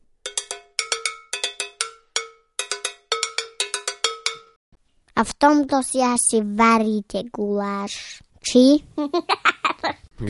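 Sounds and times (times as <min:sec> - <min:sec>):
agogo bells being struck: 0:00.2 - 0:04.6
speech: 0:05.2 - 0:09.6.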